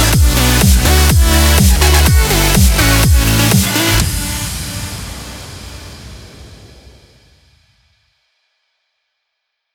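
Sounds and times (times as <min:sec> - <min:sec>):
electro house music: 0:00.0 - 0:05.4.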